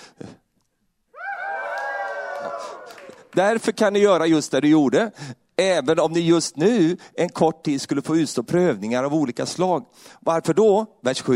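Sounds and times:
audience cheering: 1.2s - 3.3s
speech: 3.4s - 11.3s.

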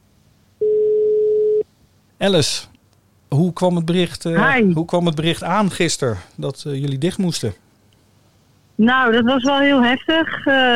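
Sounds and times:
telephone ringing tone while placing a call: 0.6s - 1.6s
speech: 2.2s - 2.7s, 3.3s - 7.6s, 8.8s - 10.7s.

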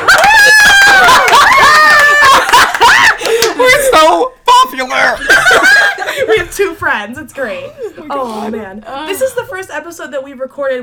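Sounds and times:
small audience of a couple of people cheering: 0.0s - 6.0s
laughter: 0.0s - 9.8s
speech: 7.0s - 10.8s.

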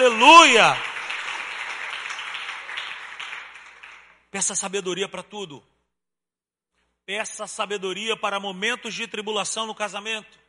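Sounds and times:
speech: 0.0s - 0.9s, 4.4s - 5.7s, 7.1s - 10.4s
audience applause: 0.0s - 4.2s.

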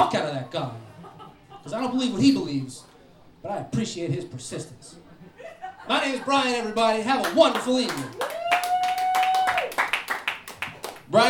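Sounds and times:
laughter: 0.0s - 2.4s, 4.1s - 8.5s
speech: 0.4s - 0.9s, 1.6s - 5.0s, 5.9s - 8.4s
audience clapping: 6.8s - 11.2s.

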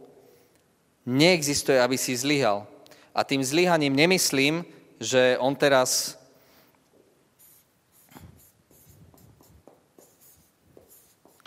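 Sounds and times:
speech: 1.0s - 6.2s
scratchy writing strokes: 7.4s - 11.4s.

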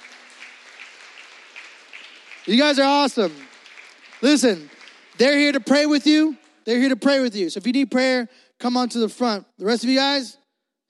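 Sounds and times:
audience clapping hands: 0.0s - 7.0s
speech: 2.4s - 3.5s, 4.2s - 10.8s.

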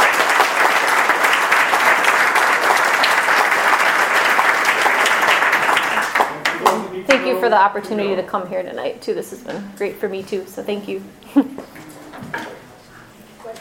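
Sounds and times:
audience round of applause: 0.0s - 7.5s
speech: 7.4s - 11.5s.

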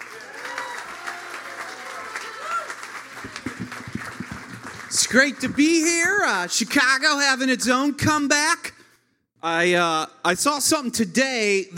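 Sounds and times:
audience applause: 0.0s - 6.8s
speech: 3.2s - 3.8s, 4.9s - 8.7s, 9.4s - 11.7s.

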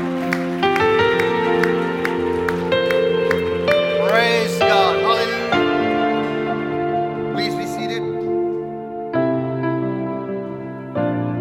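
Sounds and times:
audience clapping in rhythm: 0.0s - 8.7s
sustained keyboard or organ chords: 0.0s - 11.3s.

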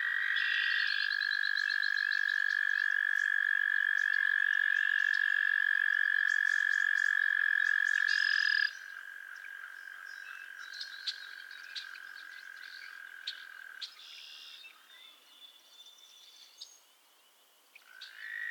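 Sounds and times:
frogs trilling in chorus: 0.0s - 15.2s, 17.8s - 18.4s.

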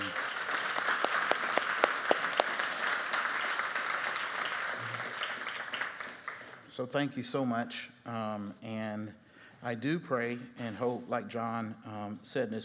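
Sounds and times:
audience applause: 0.0s - 6.7s
speech: 6.8s - 12.6s.

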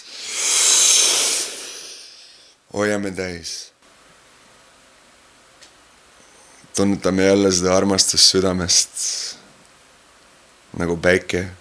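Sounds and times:
deep breath in through the nose: 0.0s - 2.6s
speech: 2.7s - 3.8s, 6.8s - 9.4s, 10.8s - 11.6s.

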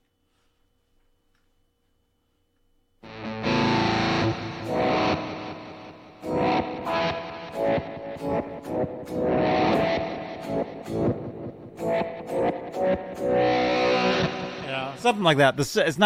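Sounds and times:
guitar through Electro-Harmonix Micro Synthesizer pedal: 3.0s - 15.5s
speech: 15.1s - 16.0s.

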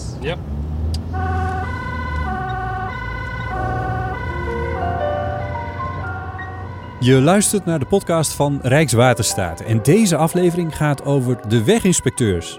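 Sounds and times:
constant low engine rumble: 0.0s - 9.8s
speech: 0.2s - 1.4s, 7.0s - 12.5s
emergency vehicle siren wailing in two-tone pattern: 1.1s - 12.5s.

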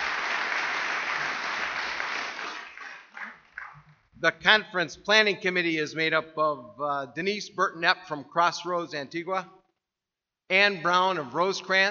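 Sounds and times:
audience applause: 0.0s - 3.9s
speech: 4.2s - 9.6s, 10.5s - 11.8s.

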